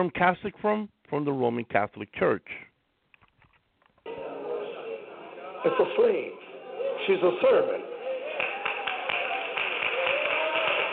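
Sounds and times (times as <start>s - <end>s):
speech: 0.0s - 2.7s, 5.6s - 6.4s, 7.0s - 7.9s
audience clapping: 7.3s - 10.9s.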